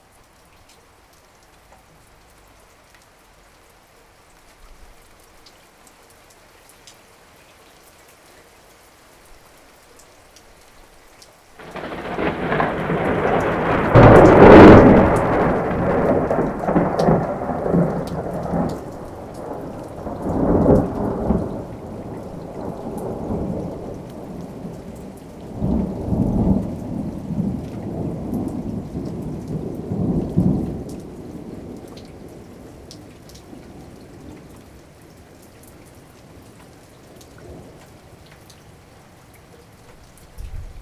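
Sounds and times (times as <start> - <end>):
thunderstorm: 11.6 - 34.4, 40.4 - 40.8.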